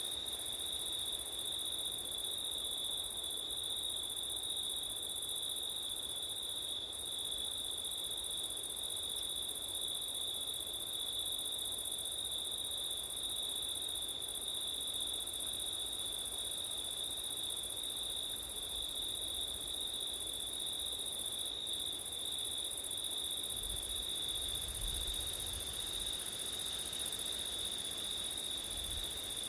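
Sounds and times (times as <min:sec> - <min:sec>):
wind: 0:00.0 - 0:29.4
chorus of crickets trilling: 0:16.8 - 0:29.4.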